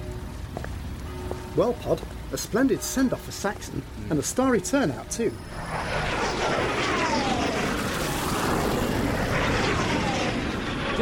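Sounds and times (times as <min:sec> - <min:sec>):
speech: 0:01.6 - 0:06.2
Red Arrows aerobatic jet aircraft flypast: 0:04.3 - 0:11.0.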